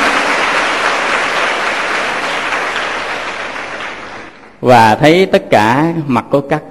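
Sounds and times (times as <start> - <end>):
audience giving a big round of applause: 0.0 - 4.6
speech: 4.6 - 6.7.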